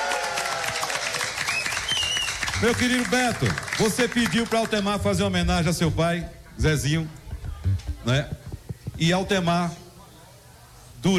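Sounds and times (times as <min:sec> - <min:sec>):
audience applause at a live show: 0:00.0 - 0:04.9
speech: 0:02.6 - 0:07.2, 0:08.0 - 0:08.4, 0:09.0 - 0:09.8.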